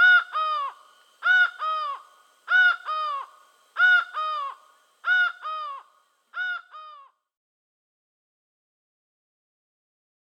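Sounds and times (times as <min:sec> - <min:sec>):
laughing falcon giving paired nasal notes in South America: 0:00.0 - 0:07.1.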